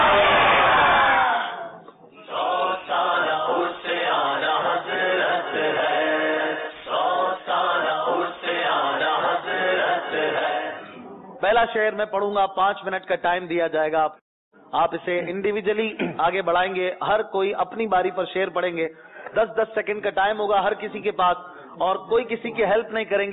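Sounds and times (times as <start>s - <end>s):
crowd chanting a religious slogan at a devotional verse-recital contest: 0.0s - 11.1s
speech: 11.8s - 23.3s.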